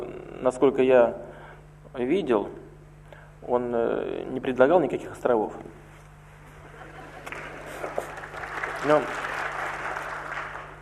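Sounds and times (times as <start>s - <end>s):
speech: 0.4s - 1.3s, 1.9s - 2.6s, 3.4s - 5.8s, 8.8s - 9.3s
laughter: 6.6s - 8.1s
applause: 7.2s - 10.8s.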